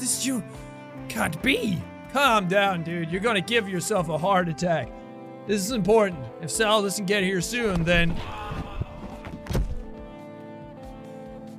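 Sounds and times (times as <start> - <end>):
speech: 0.0 - 8.6
someone falling down from a treehouse: 7.8 - 10.0.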